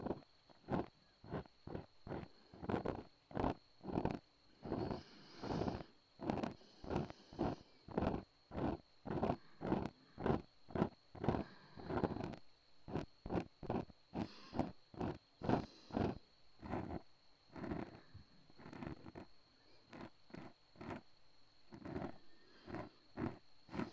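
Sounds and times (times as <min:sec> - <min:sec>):
ear cleaning: 0:00.0 - 0:17.0, 0:18.6 - 0:19.2, 0:21.7 - 0:23.9
breathing into the left ear: 0:04.6 - 0:12.4, 0:14.1 - 0:16.2, 0:17.8 - 0:20.1, 0:21.8 - 0:23.9.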